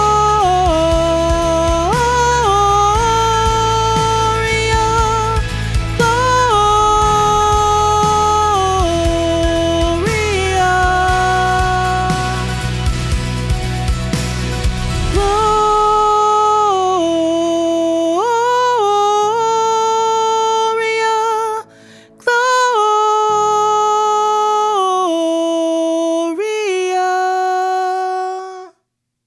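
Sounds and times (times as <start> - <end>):
soprano singing lead: 0.0 - 28.7
Christmas choir singing: 6.1 - 17.2.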